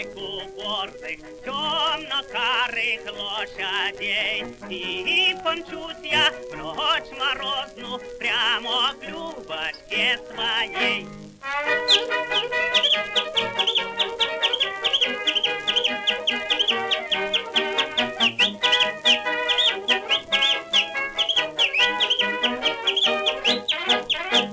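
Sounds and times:
speech: 0.0 - 13.7
two-finger whistling of bird-like calls on a record: 11.8 - 24.5.

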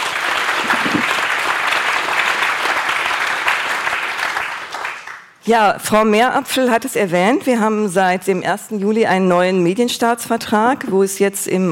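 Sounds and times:
audience applause: 0.0 - 5.3
speech: 5.5 - 11.7.

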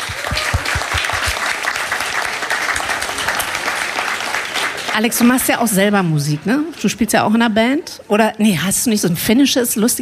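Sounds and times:
audience applause: 0.0 - 5.5
speech: 5.0 - 10.0.

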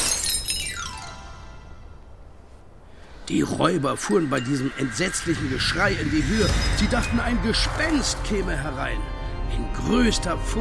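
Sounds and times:
window panes shattering: 0.0 - 1.0
speech: 3.3 - 10.6.

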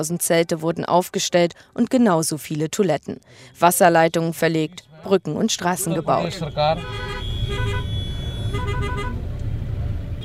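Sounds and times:
speech: 0.0 - 7.7
congested road traffic heard from inside car: 3.4 - 10.2.

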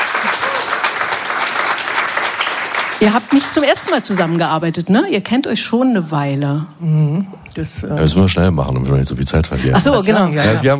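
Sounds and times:
audience clapping to welcome guests at a talk event: 0.0 - 4.6
speech: 3.0 - 10.7.

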